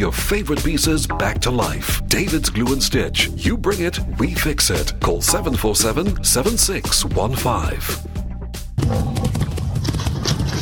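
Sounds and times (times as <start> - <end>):
speech: 0.0 - 8.1
galloping hoofbeats of rhinos running across the savannah plains: 8.8 - 10.5.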